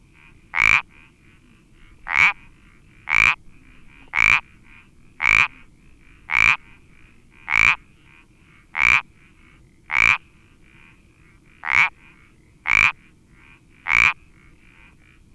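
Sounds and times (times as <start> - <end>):
Iberian parsley frog Pelodytes ibericus croaking: 0.1 - 15.3.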